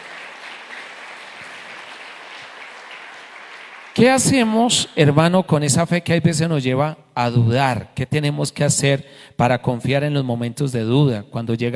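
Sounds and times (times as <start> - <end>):
audience applause: 0.0 - 4.2
speech: 4.0 - 11.7.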